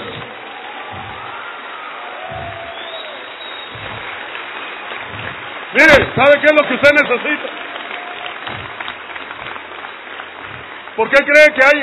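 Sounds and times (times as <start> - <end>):
audience applause: 0.0 - 11.8
speech: 5.8 - 7.6, 11.0 - 11.8.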